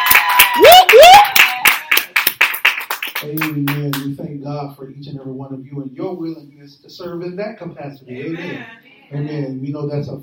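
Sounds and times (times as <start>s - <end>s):
vocal whoops: 0.0s - 2.0s
audience clapping: 0.0s - 4.2s
speech: 3.2s - 10.2s.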